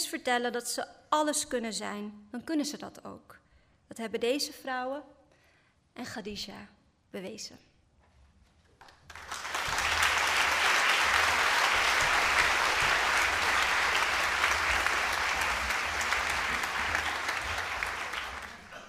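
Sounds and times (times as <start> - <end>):
speech: 0.1 - 5.2, 6.0 - 7.7
audience applause: 8.8 - 18.8.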